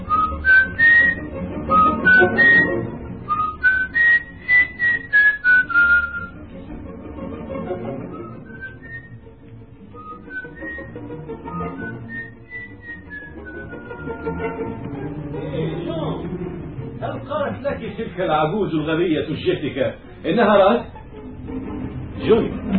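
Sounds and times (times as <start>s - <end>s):
whistle sounding a lilting tune: 0.0s - 6.4s, 8.1s - 9.2s, 9.9s - 14.5s
speech: 18.2s - 21.0s, 22.3s - 22.6s.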